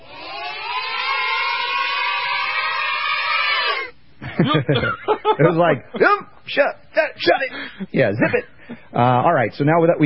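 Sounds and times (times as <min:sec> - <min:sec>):
children's cheering played in reverse: 0:00.0 - 0:04.0
laughter: 0:04.2 - 0:06.1
speech: 0:04.4 - 0:10.0.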